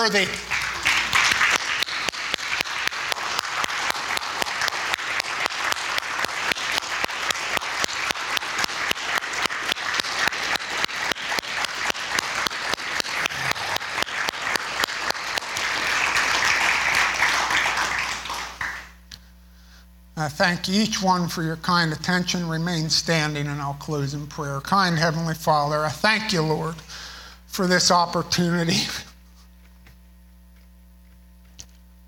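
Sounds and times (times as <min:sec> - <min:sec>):
speech: 0:00.0 - 0:00.6, 0:20.4 - 0:26.9, 0:27.6 - 0:29.0
audience clapping hands: 0:00.0 - 0:19.0.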